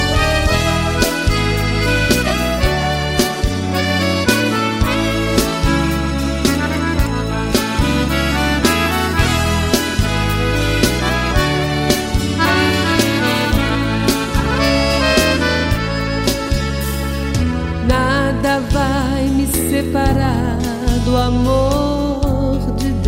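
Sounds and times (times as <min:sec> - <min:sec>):
retro gospel music: 0:00.0 - 0:23.0.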